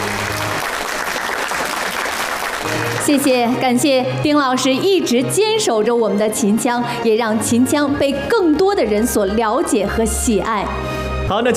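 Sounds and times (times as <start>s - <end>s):
audience applauding a Qinqiang opera performer: 0.0s - 3.3s
speech: 3.0s - 11.5s.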